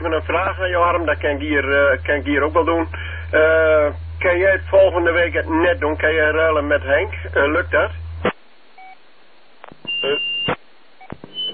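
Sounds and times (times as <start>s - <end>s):
speech: 0.0s - 8.0s
sharp clicks and knocks: 9.6s - 11.4s
electronic beeping: 9.8s - 11.5s.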